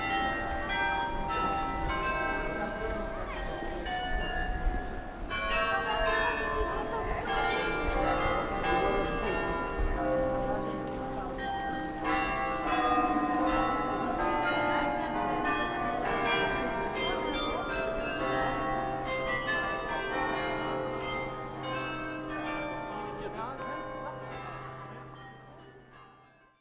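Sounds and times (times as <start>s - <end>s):
bells ringing: 0.0s - 26.6s.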